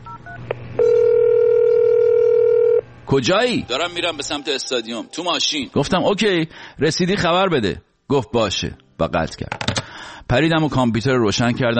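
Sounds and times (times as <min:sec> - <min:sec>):
dial tone: 0:00.2 - 0:02.8
phone being dialed: 0:00.8 - 0:02.8
speech: 0:03.1 - 0:11.7.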